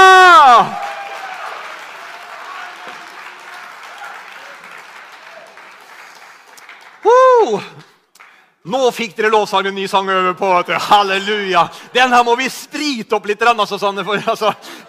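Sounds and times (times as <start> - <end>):
loud swooping cheers: 0.0 - 5.8
audience clapping: 0.4 - 8.5
speech: 7.5 - 7.7, 8.6 - 14.8.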